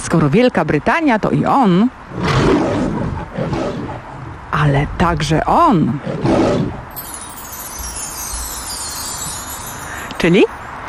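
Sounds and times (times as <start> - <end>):
speech: 0.1 - 2.6, 4.6 - 6.9, 10.2 - 10.6
lion roar: 2.1 - 4.4, 5.9 - 6.9.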